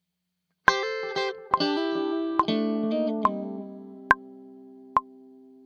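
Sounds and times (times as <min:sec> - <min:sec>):
musical lick: 0:00.7 - 0:05.1.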